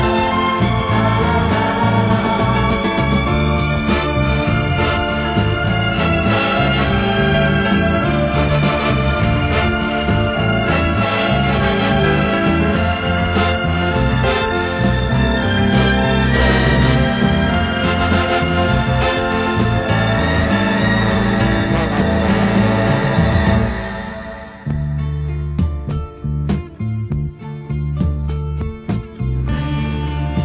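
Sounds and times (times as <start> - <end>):
instrumental music: 0.0 - 30.4.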